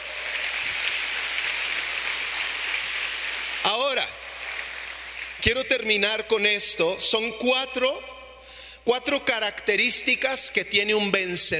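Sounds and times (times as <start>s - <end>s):
audience applause: 0.0s - 5.5s
speech: 5.4s - 8.1s, 8.8s - 11.5s.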